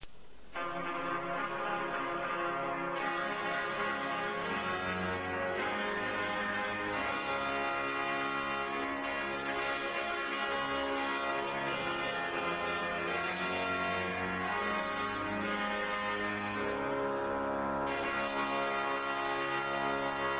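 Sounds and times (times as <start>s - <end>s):
trumpet: 0.6s - 20.3s.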